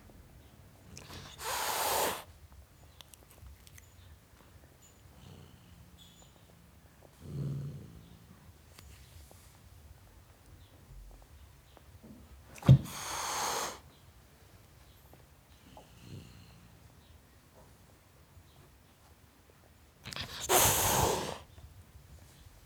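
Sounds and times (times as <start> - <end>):
domestic cat hissing: 1.0 - 2.3, 12.6 - 13.8, 20.1 - 21.5.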